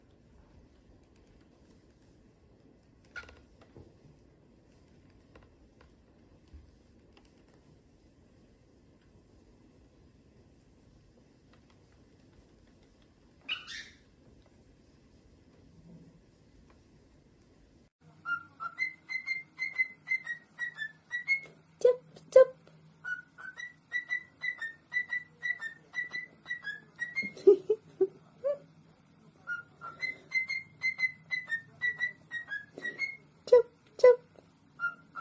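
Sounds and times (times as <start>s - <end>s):
faint low hum: 0.0s - 35.1s
cockatiel whistling: 13.4s - 14.0s, 18.2s - 21.5s, 23.0s - 27.3s, 29.4s - 33.2s, 34.8s - 35.1s.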